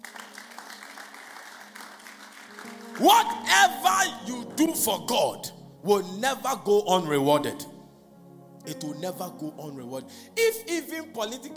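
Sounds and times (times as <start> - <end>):
audience clapping: 0.0 - 4.1
speech: 3.0 - 7.7, 8.6 - 11.5.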